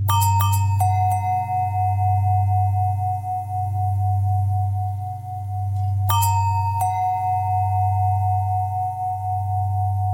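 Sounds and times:
long bell tones: 0.1s - 10.1s.

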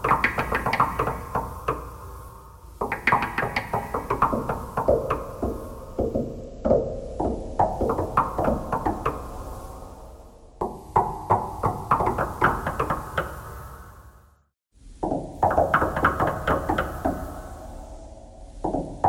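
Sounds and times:
knocking thread noise: 0.0s - 2.1s, 2.7s - 9.7s, 10.6s - 13.5s, 15.0s - 17.4s, 18.6s - 19.0s.

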